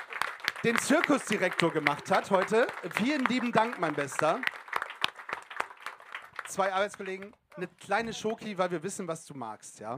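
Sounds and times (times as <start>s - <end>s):
audience applause: 0.0s - 7.8s
speech: 0.6s - 4.6s, 6.5s - 9.9s.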